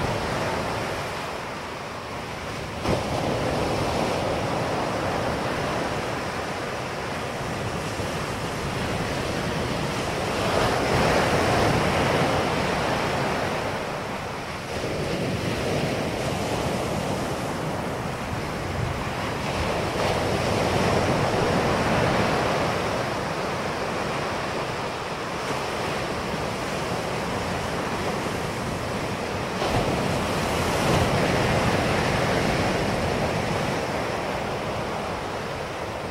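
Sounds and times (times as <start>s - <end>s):
ocean waves crashing: 0.0s - 36.0s.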